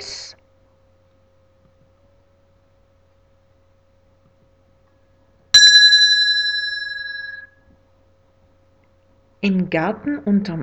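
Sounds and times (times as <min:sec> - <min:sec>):
bicycle bell ringing: 0:05.6 - 0:07.4
speech: 0:09.4 - 0:10.6.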